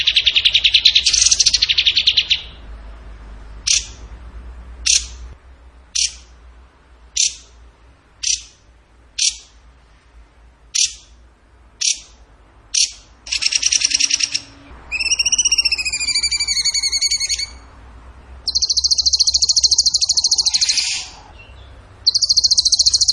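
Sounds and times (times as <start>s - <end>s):
bird singing trills: 0.0s - 2.7s, 3.7s - 4.0s, 4.8s - 5.2s, 5.9s - 6.3s, 7.2s - 7.5s, 8.2s - 8.6s, 9.2s - 9.5s, 10.8s - 11.2s, 11.8s - 17.7s, 18.4s - 23.1s.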